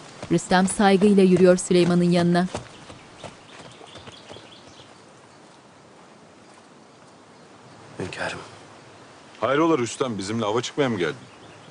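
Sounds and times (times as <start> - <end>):
hoofbeats of three horses riding into a camp: 0.0 - 4.8
speech: 0.3 - 2.7, 9.5 - 11.7.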